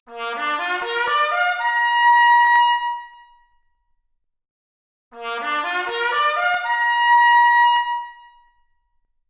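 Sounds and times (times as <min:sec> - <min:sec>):
trumpet arpeggio: 0:00.2 - 0:01.9, 0:05.2 - 0:07.7.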